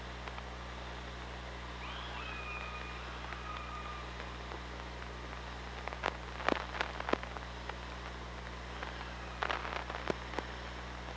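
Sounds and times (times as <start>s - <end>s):
constant hiss and low hum: 0.0s - 11.1s
killer whale call underwater: 1.8s - 4.4s.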